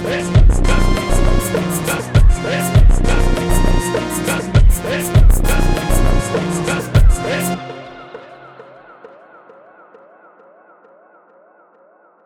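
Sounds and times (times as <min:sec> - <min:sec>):
synth: 0:00.0 - 0:09.7.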